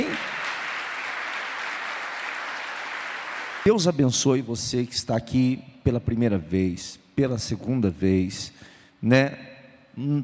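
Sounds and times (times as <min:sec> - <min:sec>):
audience applauding: 0:00.0 - 0:03.9
speech: 0:03.6 - 0:10.2.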